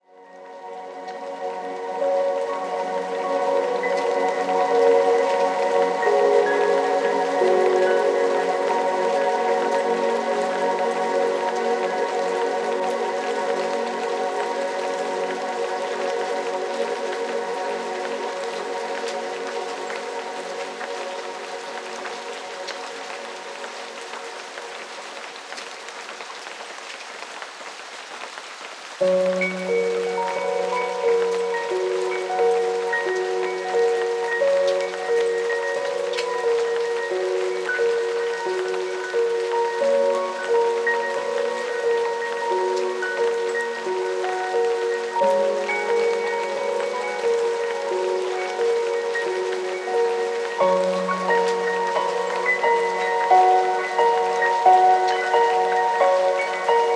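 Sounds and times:
ambient music: 0.0s - 25.9s, 29.0s - 56.9s.

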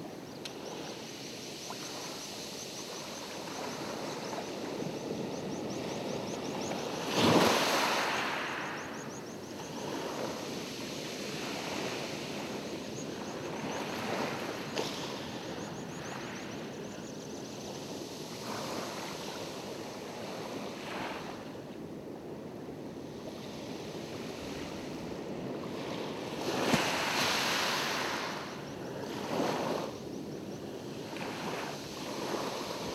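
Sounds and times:
ocean waves: 0.0s - 32.9s.

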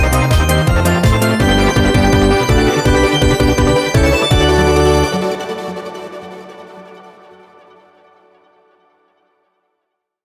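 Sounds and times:
victory music: 0.0s - 8.1s.

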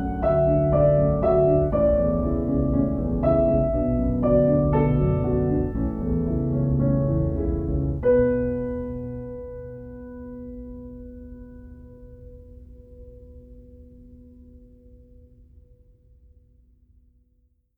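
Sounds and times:
relaxing piano music: 0.0s - 15.8s.

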